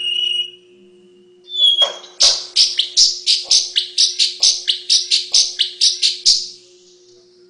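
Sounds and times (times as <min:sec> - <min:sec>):
faint steady hum: 0:00.0 - 0:07.4
paradise whydah chattering song: 0:01.7 - 0:06.7.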